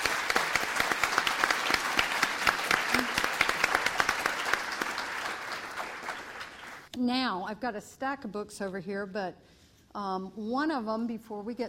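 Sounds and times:
audience applause: 0:00.0 - 0:06.9
speech: 0:07.1 - 0:11.6.

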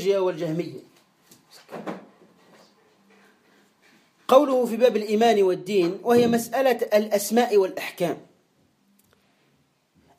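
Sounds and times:
speech: 0:00.0 - 0:00.9, 0:01.7 - 0:02.0, 0:04.3 - 0:08.3
door being closed: 0:01.7 - 0:02.1, 0:06.1 - 0:06.6.

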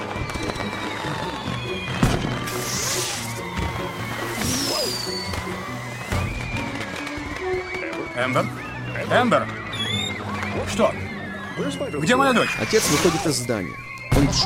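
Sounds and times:
firecrackers banging: 0:00.0 - 0:10.5
high whistling and whining tones: 0:00.0 - 0:14.4
speech: 0:08.2 - 0:09.6, 0:10.6 - 0:14.4.

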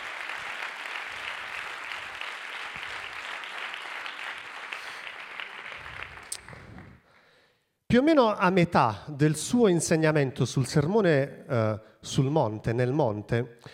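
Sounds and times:
congregation applauding at a church Sunday gathering: 0:00.0 - 0:07.0
speech: 0:07.9 - 0:13.7.

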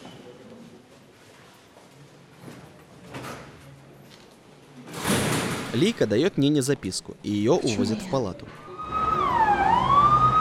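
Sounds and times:
speech: 0:05.7 - 0:08.7
speeding ambulance siren: 0:08.6 - 0:10.3.

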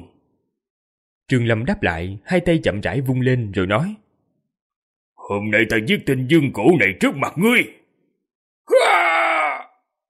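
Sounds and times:
speech: 0:01.3 - 0:04.0, 0:05.3 - 0:07.8
man screaming in pain: 0:08.7 - 0:09.8.

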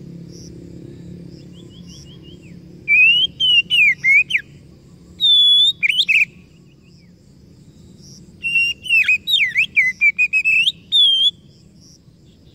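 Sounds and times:
Oriental magpie-robin song: 0:01.4 - 0:07.1, 0:08.4 - 0:11.6.

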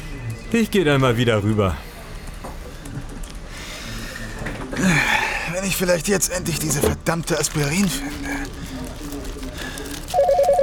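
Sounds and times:
speech: 0:00.5 - 0:01.9, 0:04.8 - 0:08.7
telephone ringing: 0:10.1 - 0:10.6.

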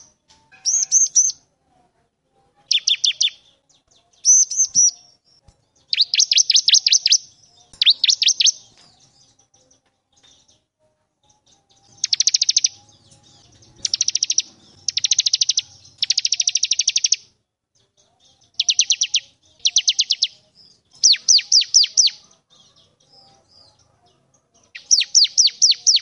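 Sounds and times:
bar-winged prinia singing vigorously: 0:00.0 - 0:01.4, 0:02.6 - 0:09.4, 0:11.5 - 0:17.4, 0:18.3 - 0:22.3, 0:24.7 - 0:26.0.

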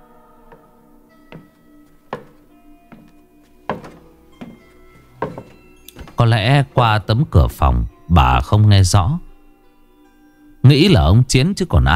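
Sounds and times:
heavy thudding as if pounding the floor: 0:02.2 - 0:06.3
speech: 0:06.3 - 0:09.3, 0:10.7 - 0:11.9.

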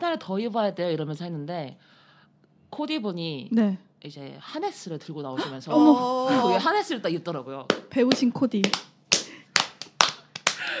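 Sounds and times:
speech: 0:00.1 - 0:02.0, 0:02.7 - 0:08.8
hands clapping: 0:07.7 - 0:10.7.

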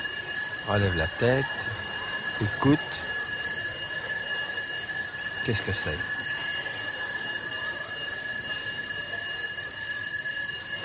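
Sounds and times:
strident ringing of hotel room bells: 0:00.0 - 0:10.8
speech: 0:00.7 - 0:01.8, 0:02.4 - 0:02.9, 0:05.5 - 0:06.1.

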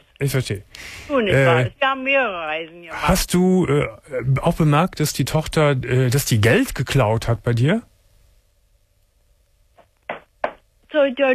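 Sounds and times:
speech: 0:00.2 - 0:07.9, 0:10.9 - 0:11.3
knocking on wood: 0:10.1 - 0:10.6.

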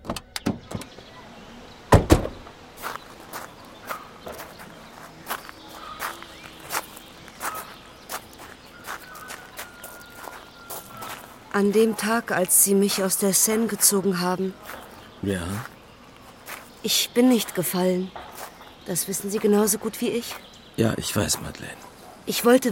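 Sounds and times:
faint outdoor background: 0:00.0 - 0:22.7
footsteps of people walking: 0:02.8 - 0:20.5
speech: 0:11.6 - 0:15.7, 0:16.8 - 0:18.2, 0:18.9 - 0:22.7.

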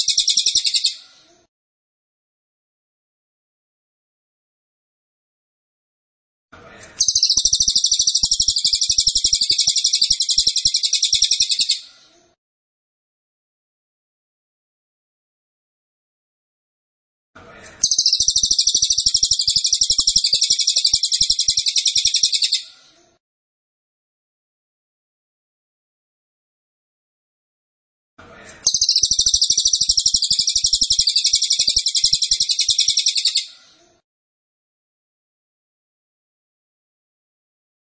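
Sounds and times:
cililin singing a metallic trill: 0:00.0 - 0:01.0, 0:07.0 - 0:11.8, 0:17.8 - 0:22.6, 0:28.7 - 0:33.5.

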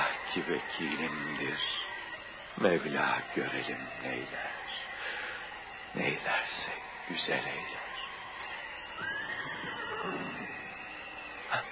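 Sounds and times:
steady rushing noise: 0:00.0 - 0:11.6
speech: 0:00.4 - 0:01.8, 0:02.6 - 0:04.6, 0:05.9 - 0:07.9
horse whinnying in a Turkish radio drama set during a storm: 0:09.0 - 0:10.7.

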